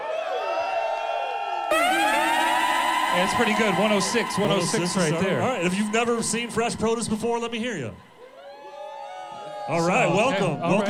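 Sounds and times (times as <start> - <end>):
crowd cheering and whooping: 0.0 - 10.8
high voices shouting: 1.7 - 8.2
speech: 3.2 - 8.1, 9.7 - 10.8.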